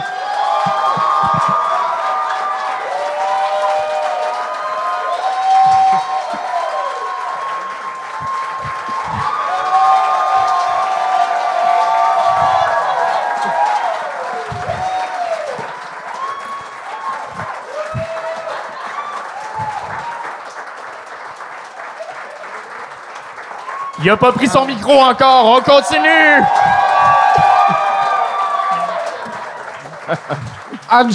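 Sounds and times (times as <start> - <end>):
long audience applause and cheering: 0.0 - 31.1
laughter: 5.5 - 6.6, 12.0 - 15.8, 17.2 - 20.1, 26.4 - 31.1
speech: 24.0 - 27.0, 30.1 - 31.1.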